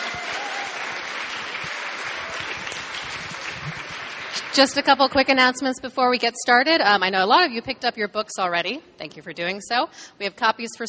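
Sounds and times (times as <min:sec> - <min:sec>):
audience applause: 0:00.0 - 0:04.8
speech: 0:04.5 - 0:10.8.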